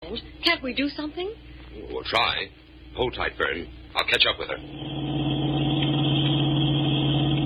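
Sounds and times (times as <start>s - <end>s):
speech: 0.1s - 5.3s
car engine drone from a radio drama car driving off the road: 4.6s - 7.4s.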